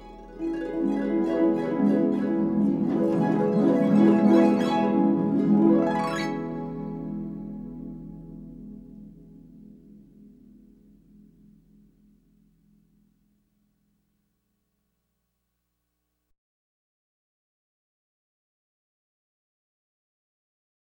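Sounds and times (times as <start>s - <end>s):
harp: 0.0s - 12.2s.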